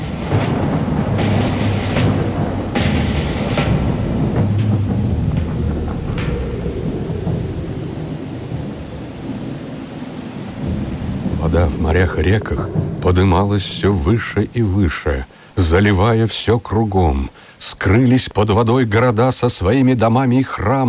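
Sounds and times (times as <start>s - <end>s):
deep rumbling thunder: 0.0s - 15.8s
heavy downpour rain: 0.0s - 20.8s
speech: 11.5s - 20.8s.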